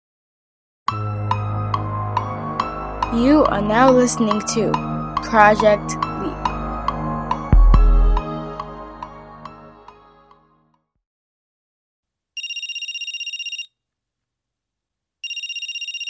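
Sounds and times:
musical notes: 0:01.0 - 0:10.5
speech: 0:03.1 - 0:06.1
phone ringtone: 0:12.4 - 0:13.8, 0:15.2 - 0:16.0.

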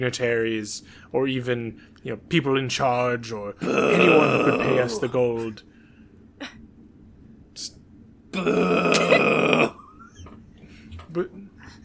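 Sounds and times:
speech: 0:00.0 - 0:05.7, 0:07.6 - 0:07.8, 0:08.4 - 0:09.1, 0:11.2 - 0:11.4
person booing: 0:03.6 - 0:05.1, 0:08.4 - 0:09.8.

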